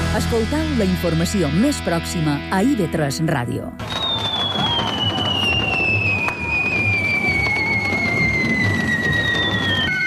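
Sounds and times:
speech: 0.2 - 4.0
correfoc fireworks at street festival in Palma: 3.8 - 9.9.

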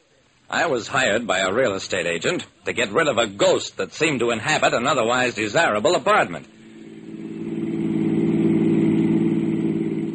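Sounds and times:
speech: 0.5 - 6.6
car engine running while driving: 6.5 - 10.1.

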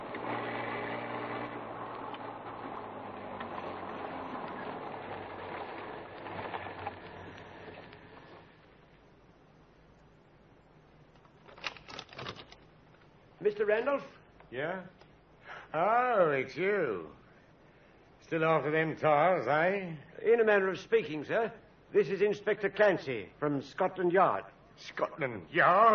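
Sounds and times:
dark sedan engine droning as the car slows on a road: 0.0 - 8.4
speech: 13.4 - 15.0, 15.7 - 17.2, 18.3 - 25.9.

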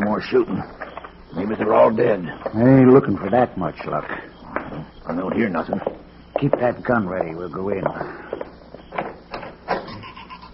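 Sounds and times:
speech: 0.2 - 8.4
door opening: 8.8 - 10.0.

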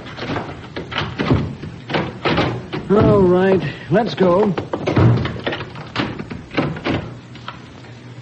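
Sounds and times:
door being locked: 0.2 - 3.3, 4.9 - 7.2
speech: 2.9 - 4.7.

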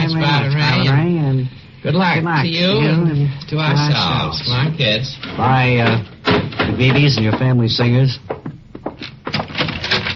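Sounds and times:
speech: 0.1 - 8.4
door: 5.8 - 7.5, 9.0 - 10.1.

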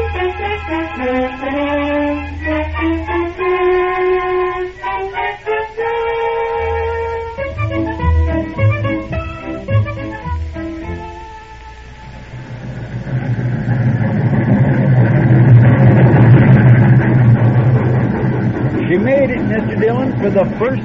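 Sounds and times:
train whistle hooting: 0.0 - 10.2
train pulling into the station rumbling: 0.0 - 20.8.

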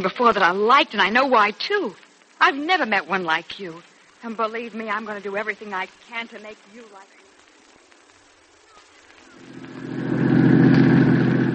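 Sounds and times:
speech: 0.0 - 7.2
car engine humming as the car drives uphill: 9.4 - 11.5.

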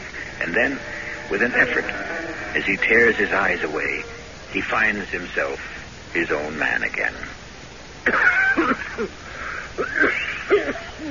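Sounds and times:
speech: 0.4 - 7.4, 8.0 - 9.2, 9.8 - 11.0
harsh cough: 8.0 - 9.1, 9.8 - 11.0.

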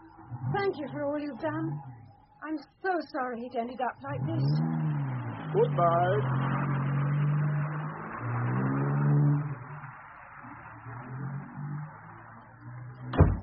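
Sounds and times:
car engine starting and driving away: 0.0 - 13.4
speech: 0.6 - 4.9, 5.5 - 6.5
sharp thud: 13.1 - 13.4.

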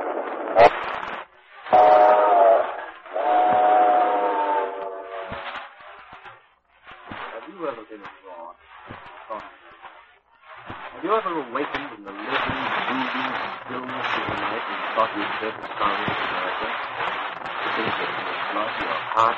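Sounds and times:
hissing: 0.0 - 19.3
steam locomotive whistle: 1.7 - 5.4.

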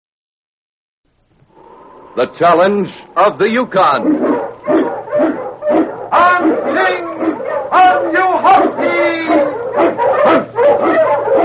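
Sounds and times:
speech: 2.2 - 4.8
Eskimo lead dog barking and yelping: 3.8 - 11.4.

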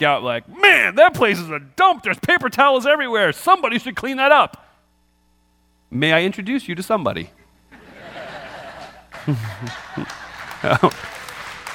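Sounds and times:
speech: 0.0 - 4.6, 5.9 - 7.4, 9.2 - 11.2
laughter: 7.7 - 11.7
audience clapping: 8.8 - 11.7.

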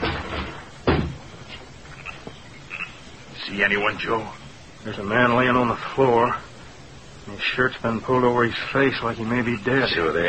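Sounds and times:
wooden cabin door kicked open with a heavy bang: 0.0 - 1.3
speech: 3.4 - 6.5, 7.2 - 10.2.

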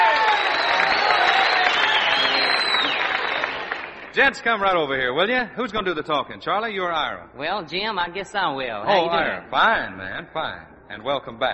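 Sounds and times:
audience applause welcoming a musical duo: 0.0 - 4.6
crowd noise: 0.0 - 4.8
speech: 4.2 - 11.5.

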